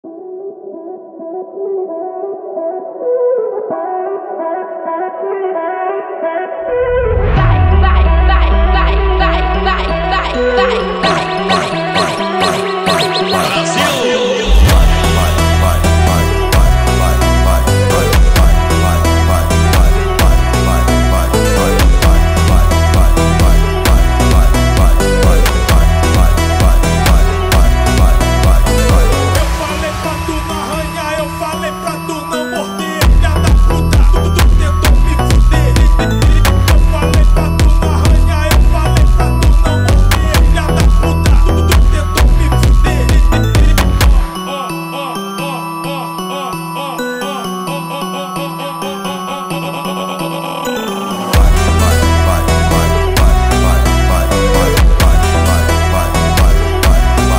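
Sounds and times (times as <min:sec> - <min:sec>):
Brazilian funk phonk music: 0:00.1 - 0:57.3.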